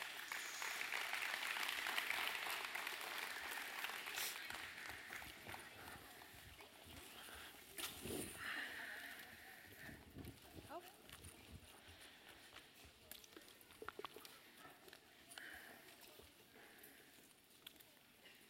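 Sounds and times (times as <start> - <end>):
audience applause: 0.0 - 6.5
faint voices: 3.1 - 18.4.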